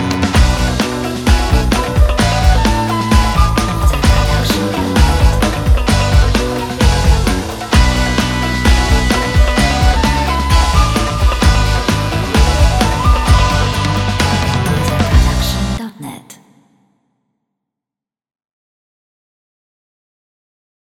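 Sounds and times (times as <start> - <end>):
expressive vintage funk music: 0.0 - 15.8.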